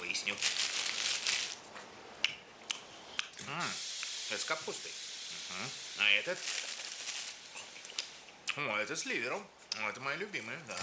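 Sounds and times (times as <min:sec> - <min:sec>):
bag of caramels crinkling: 0:00.1 - 0:01.7, 0:06.3 - 0:08.1
speech: 0:03.5 - 0:06.6, 0:08.6 - 0:10.8.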